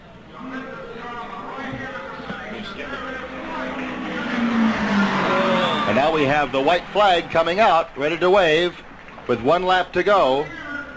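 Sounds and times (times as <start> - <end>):
race car driving past on the track: 3.1 - 6.8
speech: 6.0 - 10.6.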